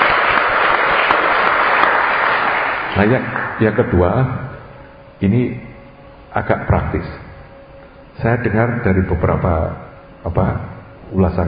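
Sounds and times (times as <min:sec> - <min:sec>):
crowd applause: 0:00.0 - 0:03.7
speech: 0:03.0 - 0:04.5, 0:05.2 - 0:05.7, 0:06.3 - 0:07.2, 0:08.2 - 0:11.4.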